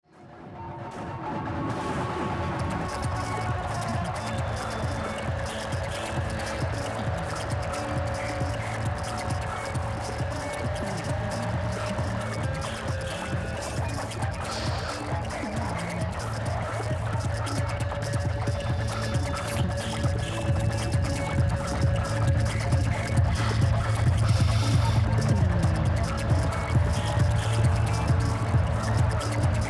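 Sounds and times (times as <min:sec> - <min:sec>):
fibonacci FM noise: 0:00.2 - 0:29.6.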